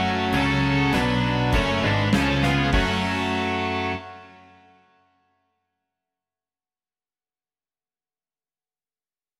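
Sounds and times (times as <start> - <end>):
rock music: 0.0 - 5.0.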